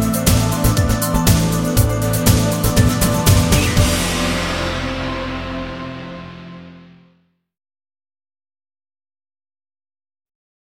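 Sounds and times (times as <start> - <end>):
promotional video background music: 0.0 - 7.2.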